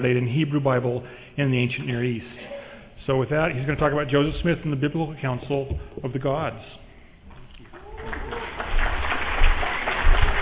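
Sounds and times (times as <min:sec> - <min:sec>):
speech: 0:00.0 - 0:02.5, 0:03.1 - 0:06.8
audience applause: 0:07.7 - 0:10.4.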